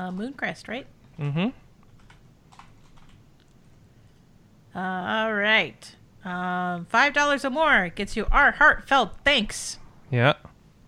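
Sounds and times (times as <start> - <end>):
speech: 0.0 - 1.6, 4.8 - 10.5
faint clicking on a computer: 1.9 - 3.2.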